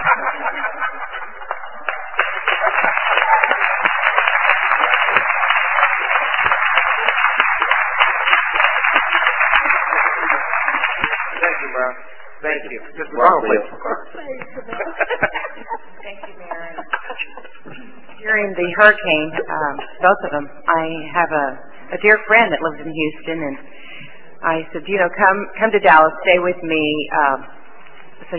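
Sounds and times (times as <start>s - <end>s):
people laughing: 0.0s - 11.8s, 12.8s - 18.2s
council and audience standing applause: 0.0s - 12.2s
murmuring voices: 0.0s - 18.7s
speech: 12.6s - 15.4s, 18.4s - 23.8s, 24.4s - 27.6s.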